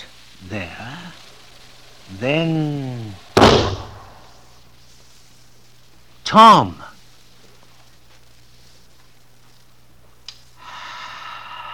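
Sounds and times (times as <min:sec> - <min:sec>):
speech: 0:00.4 - 0:01.2, 0:02.1 - 0:03.7, 0:06.3 - 0:06.9
gunshot muffled by a blanket wrapped around the gun: 0:03.4 - 0:04.3.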